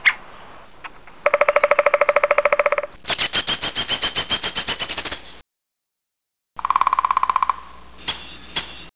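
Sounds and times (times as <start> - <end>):
woodpecker: 1.2 - 5.4, 6.6 - 8.7.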